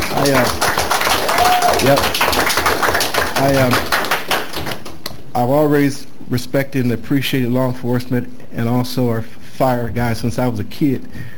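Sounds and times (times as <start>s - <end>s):
round of applause: 0.0s - 5.1s
speech: 0.2s - 0.8s, 1.4s - 2.6s, 3.4s - 3.9s, 5.4s - 11.3s.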